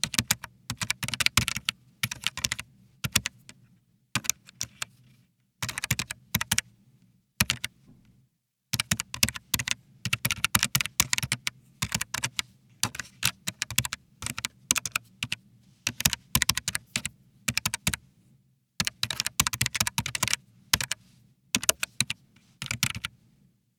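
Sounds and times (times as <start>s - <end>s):
PC keyboard: 0.0s - 3.4s, 4.2s - 4.9s, 5.6s - 6.6s, 7.4s - 7.7s, 8.8s - 18.0s, 18.8s - 21.0s, 21.6s - 23.1s.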